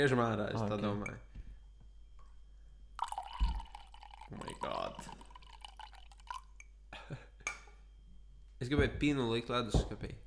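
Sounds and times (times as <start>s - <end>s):
speech: 0.0s - 1.3s, 4.3s - 5.2s, 8.6s - 10.2s
beer pouring into a glass: 3.0s - 6.6s.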